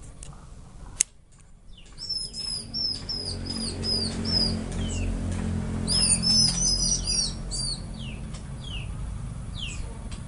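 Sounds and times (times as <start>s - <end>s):
steady hum: 0.0s - 10.2s
orange-headed thrush singing: 1.8s - 10.0s.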